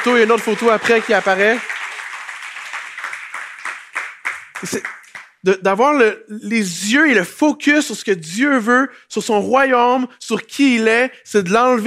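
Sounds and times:
speech: 0.0 - 1.7, 4.6 - 11.8
crowd audience applauding volunteers: 0.0 - 5.4.

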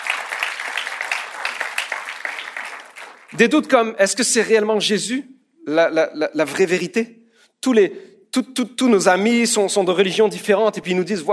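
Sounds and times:
audience applauding: 0.0 - 3.4
speech: 3.4 - 11.3.

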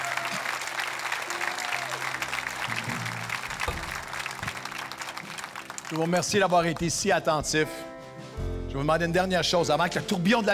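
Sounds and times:
applause: 0.0 - 7.0
speech: 5.9 - 7.9, 8.7 - 10.5.

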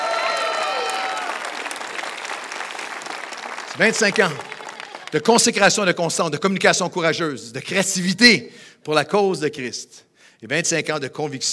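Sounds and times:
audience applause: 0.0 - 5.5
speech: 3.8 - 4.5, 5.1 - 11.5.

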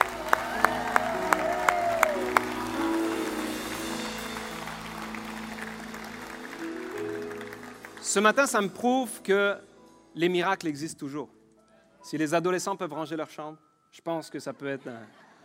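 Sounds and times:
church congregation applauding the newly baptised at a morning service: 0.0 - 8.8
speech: 8.1 - 11.4, 12.0 - 15.2.

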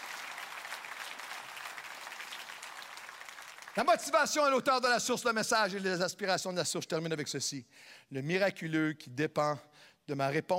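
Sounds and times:
audience applause: 0.0 - 4.2
speech: 3.8 - 10.5.

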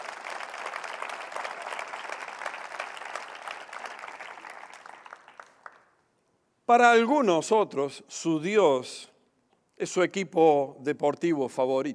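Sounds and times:
audience applause: 0.0 - 5.9
speech: 6.7 - 9.1, 9.8 - 11.9.

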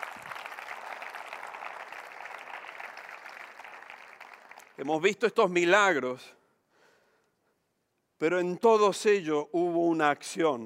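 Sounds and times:
audience applause: 0.0 - 4.8
speech: 4.8 - 6.4, 8.2 - 10.6.

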